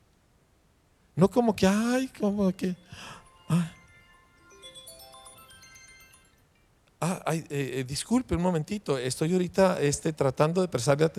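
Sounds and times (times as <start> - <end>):
speech: 1.2 - 3.8, 7.3 - 11.1
mobile phone ringtone: 2.2 - 6.6.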